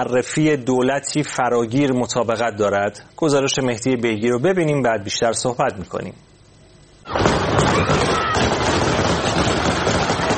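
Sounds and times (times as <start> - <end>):
speech: 0.0 - 6.3
gunshots fired into the air: 7.1 - 10.3
people shouting: 7.1 - 10.3.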